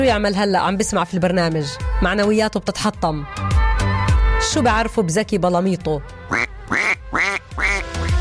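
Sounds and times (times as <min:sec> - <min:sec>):
speech: 0:00.0 - 0:03.6, 0:04.4 - 0:06.5
caged pet bird squawking: 0:06.3 - 0:08.1.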